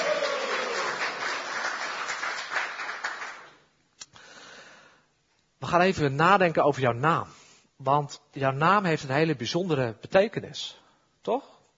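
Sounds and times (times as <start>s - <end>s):
congregation applauding at a baptism: 0.0s - 3.7s
speech: 5.7s - 11.5s.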